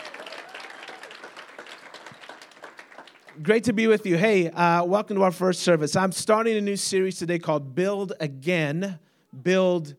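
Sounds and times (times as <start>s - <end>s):
church congregation applause at a morning service: 0.0s - 3.8s
speech: 3.4s - 9.9s.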